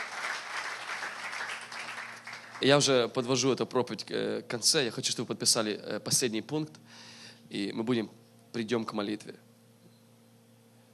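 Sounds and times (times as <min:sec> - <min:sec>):
audience applause: 0:00.0 - 0:02.9
speech: 0:02.6 - 0:09.5.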